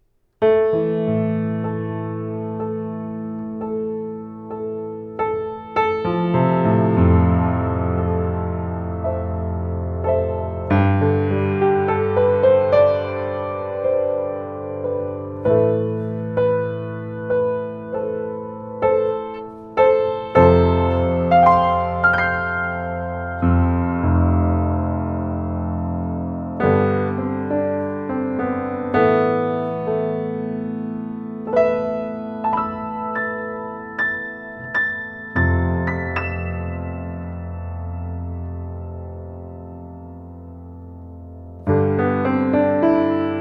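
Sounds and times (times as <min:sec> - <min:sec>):
piano: 0:00.0 - 0:43.3.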